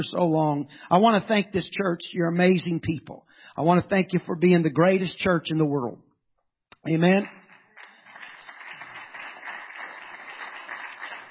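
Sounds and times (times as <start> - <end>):
speech: 0.0 - 6.0, 6.8 - 7.4
audience clapping: 6.9 - 11.2.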